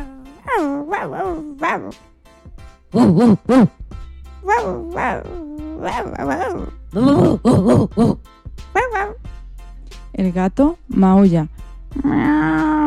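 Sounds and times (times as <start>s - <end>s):
puppies answering: 0.0s - 2.0s, 4.4s - 8.2s, 8.8s - 9.2s
dog barking: 0.4s - 2.0s, 4.4s - 7.3s, 8.8s - 9.2s
speech: 0.6s - 2.1s, 2.9s - 9.4s, 10.2s - 12.8s.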